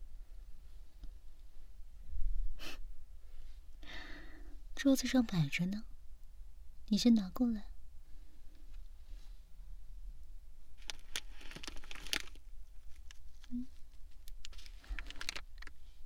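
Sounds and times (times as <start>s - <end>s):
speech: 4.8s - 5.9s, 6.9s - 7.7s
plastic packaging bag crinkling and tearing open: 10.8s - 15.8s.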